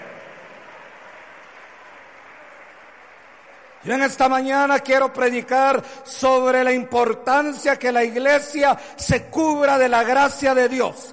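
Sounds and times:
audience applause: 0:00.0 - 0:04.0
speech: 0:03.8 - 0:11.1.

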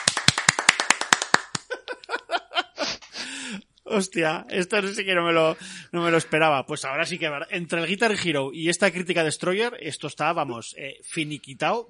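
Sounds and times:
handclaps: 0:00.0 - 0:01.7
laughter: 0:01.6 - 0:03.2
speech: 0:03.9 - 0:11.8.

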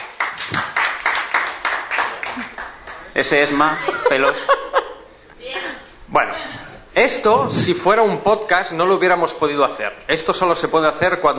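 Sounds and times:
audience applause: 0:00.0 - 0:03.2
speech: 0:00.5 - 0:00.8, 0:03.2 - 0:04.6, 0:07.0 - 0:11.3
laughter: 0:03.6 - 0:05.8.

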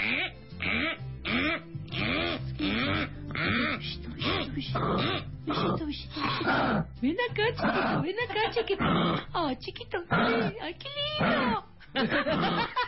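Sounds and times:
recorded kangaroo calls of guttural moaning grunts: 0:00.0 - 0:07.0, 0:07.6 - 0:09.4, 0:10.1 - 0:10.6, 0:11.2 - 0:11.7
speech: 0:04.6 - 0:12.8
laughter: 0:07.8 - 0:08.8, 0:11.8 - 0:12.8.

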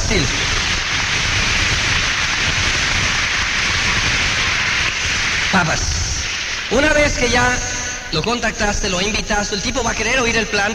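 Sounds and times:
audience applause: 0:00.0 - 0:08.2
speech: 0:00.1 - 0:00.5, 0:05.5 - 0:06.0, 0:06.7 - 0:10.7.

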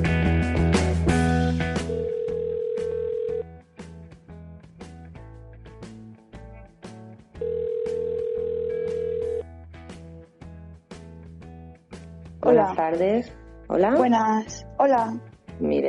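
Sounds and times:
rhythmic music: 0:00.0 - 0:08.1, 0:08.8 - 0:15.8
long steady telephone ring tone during a random call to an unknown number: 0:01.8 - 0:03.4, 0:07.4 - 0:09.4
speech: 0:12.5 - 0:15.8.

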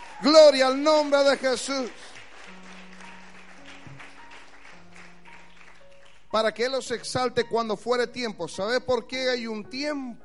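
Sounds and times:
audience applauding: 0:00.0 - 0:06.4
speech: 0:00.2 - 0:02.1, 0:06.3 - 0:10.2.

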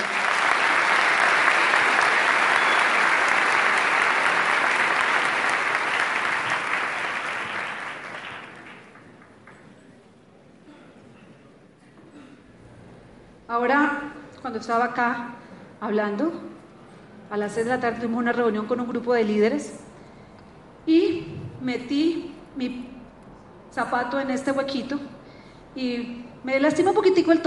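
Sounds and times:
audience applause: 0:00.0 - 0:09.6
speech: 0:14.6 - 0:16.5, 0:17.3 - 0:19.9, 0:21.7 - 0:22.8, 0:23.8 - 0:25.1, 0:25.8 - 0:27.4.

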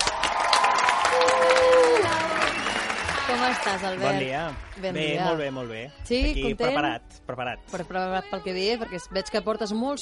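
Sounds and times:
audience cheering: 0:00.0 - 0:04.9
audience applause: 0:00.0 - 0:05.5
speech: 0:03.4 - 0:10.0.

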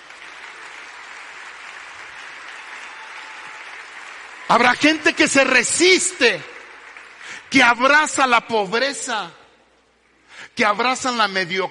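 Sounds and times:
audience applause: 0:00.0 - 0:07.7
speech: 0:04.5 - 0:06.5, 0:07.5 - 0:09.4, 0:10.6 - 0:11.6.

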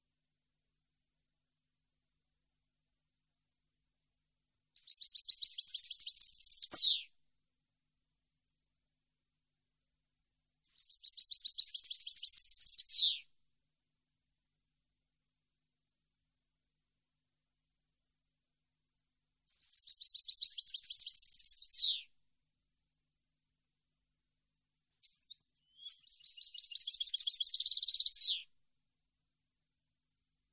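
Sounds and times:
European goldfinch singing: 0:04.8 - 0:07.0, 0:10.7 - 0:13.2, 0:19.5 - 0:22.0, 0:25.0 - 0:28.4.

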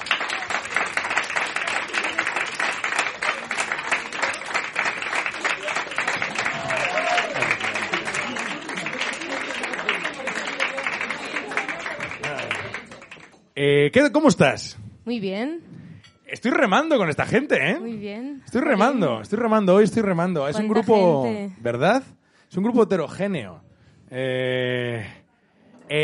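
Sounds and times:
audience applause for guest: 0:00.0 - 0:13.3
speech: 0:13.6 - 0:15.7, 0:16.3 - 0:25.2, 0:25.9 - 0:26.0.

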